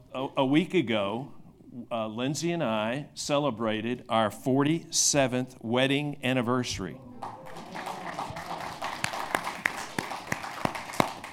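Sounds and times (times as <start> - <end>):
speech: 0.1 - 7.1
audience applause: 7.2 - 11.3.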